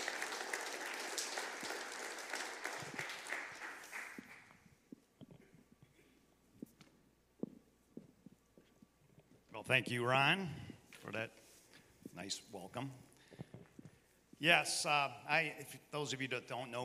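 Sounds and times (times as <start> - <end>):
audience applause welcoming the head elder: 0.0 - 4.5
speech: 9.6 - 11.4, 12.2 - 13.1, 14.4 - 16.8.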